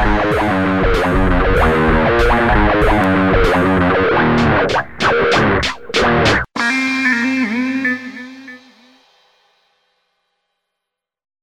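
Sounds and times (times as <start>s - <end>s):
guitar: 0.0s - 9.0s.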